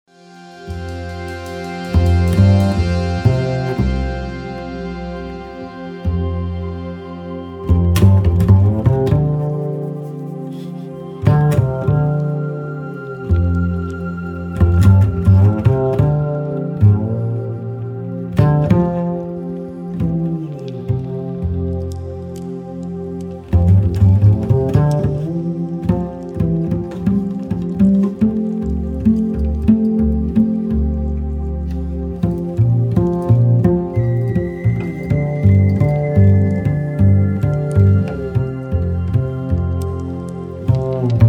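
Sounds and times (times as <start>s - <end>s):
bass music: 0.0s - 41.2s.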